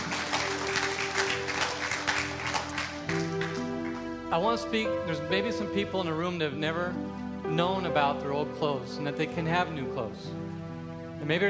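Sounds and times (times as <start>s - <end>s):
large crowd clapping at a church service: 0.0s - 4.6s
speech: 4.3s - 10.4s, 11.2s - 11.4s.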